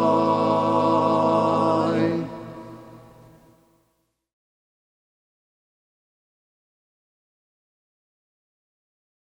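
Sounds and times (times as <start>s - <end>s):
baritone singing: 0.0s - 3.1s.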